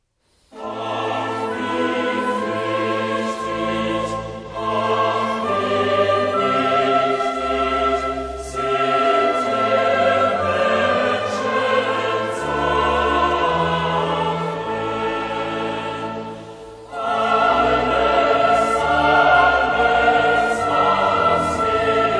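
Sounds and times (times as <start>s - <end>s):
chorale: 0.0s - 22.1s.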